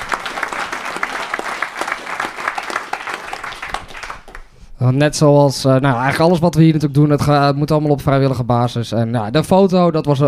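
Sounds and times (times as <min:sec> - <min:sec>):
applause: 0:00.0 - 0:04.6
speech: 0:04.8 - 0:10.2.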